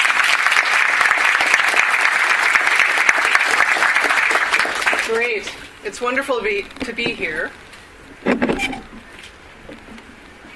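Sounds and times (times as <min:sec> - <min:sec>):
audience applause: 0:00.0 - 0:05.5
speech: 0:05.1 - 0:07.6.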